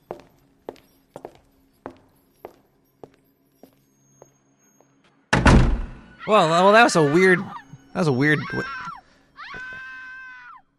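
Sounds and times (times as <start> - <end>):
woman screaming: 6.1 - 7.8, 8.4 - 10.6
speech: 6.3 - 8.9.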